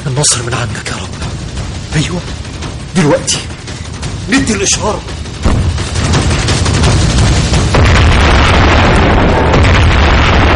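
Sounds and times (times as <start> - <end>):
speech: 0.1 - 1.4, 2.0 - 3.6, 4.3 - 5.2
tank explosions in a radio-drama battle: 5.3 - 10.5.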